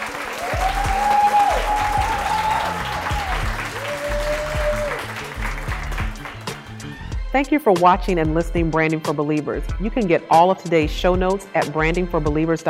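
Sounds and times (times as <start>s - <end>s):
audience clapping: 0.0s - 7.1s
speech: 7.4s - 12.6s.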